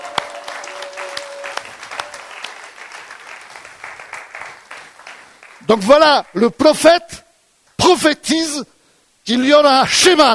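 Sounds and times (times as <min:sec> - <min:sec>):
audience applause: 0:00.0 - 0:06.3
speech: 0:05.7 - 0:07.2, 0:07.9 - 0:10.3.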